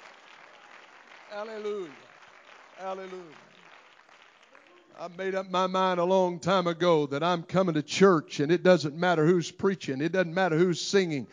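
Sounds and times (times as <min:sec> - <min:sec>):
audience clapping: 0:00.0 - 0:06.1
speech: 0:01.3 - 0:02.1, 0:02.8 - 0:03.6, 0:05.0 - 0:11.3.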